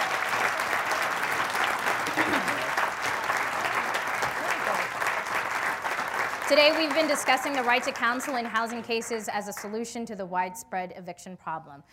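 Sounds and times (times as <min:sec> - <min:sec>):
audience applause for panelists: 0:00.0 - 0:09.0
speech: 0:06.5 - 0:11.9.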